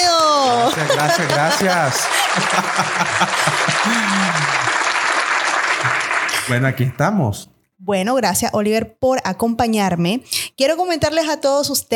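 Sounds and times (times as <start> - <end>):
applause: 0.0 - 7.0
laughter: 0.3 - 4.9
speech: 0.5 - 4.7, 5.8 - 11.9.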